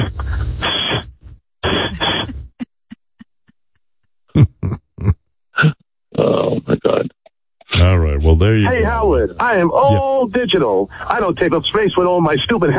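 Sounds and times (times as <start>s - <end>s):
person sniffing exaggeratedly: 0.0s - 2.5s
person snorting: 1.6s - 2.6s, 4.3s - 6.9s
speech: 8.6s - 12.7s.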